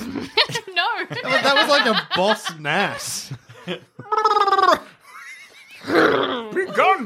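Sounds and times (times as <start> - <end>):
laughter: 0.0 - 7.0
speech: 1.2 - 4.4, 5.9 - 7.0
person imitating a horse whinny: 4.0 - 4.9.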